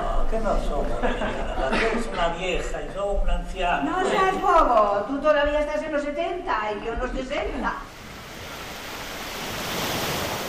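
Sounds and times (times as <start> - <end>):
speech: 0.3 - 8.0
laughter: 0.7 - 3.0
ocean waves: 7.8 - 10.4.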